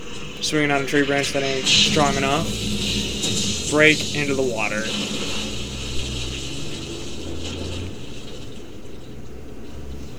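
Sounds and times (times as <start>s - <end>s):
film Predator cloaking device switching off with crackling hiss: 0.0s - 10.1s
speech: 0.4s - 2.7s, 3.7s - 5.2s.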